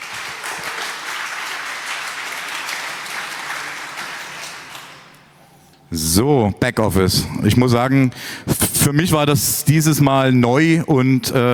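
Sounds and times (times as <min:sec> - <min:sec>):
audience applause: 0:00.0 - 0:05.4
speech: 0:05.9 - 0:11.5.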